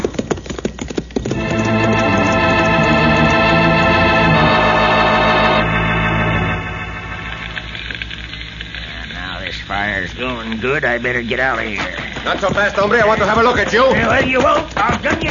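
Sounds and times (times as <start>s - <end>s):
horses galloping hard on a ride to a house: 0.0s - 4.4s, 9.8s - 15.3s
loud steady wash of sound: 1.3s - 8.3s
speech: 10.5s - 15.3s.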